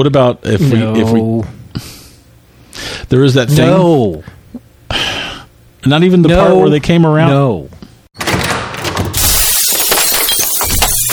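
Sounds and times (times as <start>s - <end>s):
speech: 0.0s - 1.9s, 3.0s - 4.4s, 5.8s - 7.8s
bottles being knocked over: 9.1s - 11.1s.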